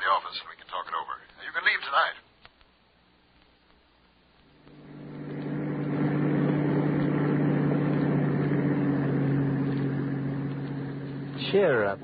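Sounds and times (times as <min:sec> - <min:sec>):
speech: 0:00.2 - 0:02.3, 0:11.6 - 0:12.0
bus engine running: 0:04.6 - 0:12.0.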